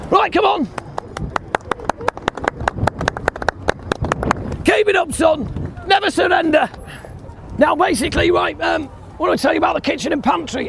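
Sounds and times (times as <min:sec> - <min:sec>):
speech: 0:00.2 - 0:00.8, 0:04.7 - 0:06.8, 0:07.6 - 0:10.6
tour group applauding: 0:00.7 - 0:04.4.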